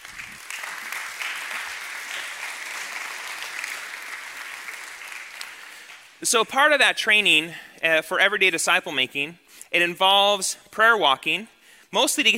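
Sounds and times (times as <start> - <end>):
church audience applause welcoming couples to the front: 0.0 - 6.2
speech: 6.2 - 12.3.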